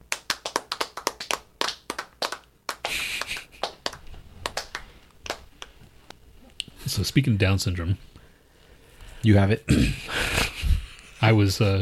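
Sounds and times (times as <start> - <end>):
golf clap: 0.0 - 5.8
speech: 7.0 - 8.1, 9.2 - 10.1, 11.2 - 11.7.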